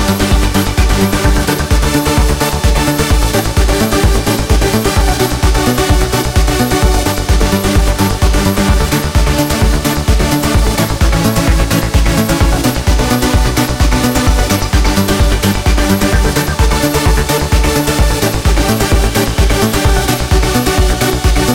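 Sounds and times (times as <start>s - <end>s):
vocal trance music: 0.0s - 21.5s.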